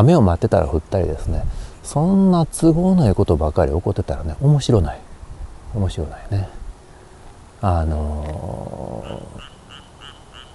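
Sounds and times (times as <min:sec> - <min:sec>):
speech: 0:00.0 - 0:05.0, 0:05.7 - 0:06.6, 0:07.6 - 0:09.5
frog croaking: 0:07.9 - 0:10.5.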